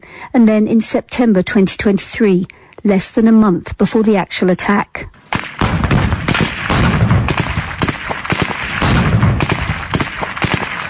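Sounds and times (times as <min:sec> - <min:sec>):
speech: 0:00.2 - 0:05.8
gunfire from Hamas military drill manoeuvres at mock-village sites in Gaza: 0:05.2 - 0:10.8.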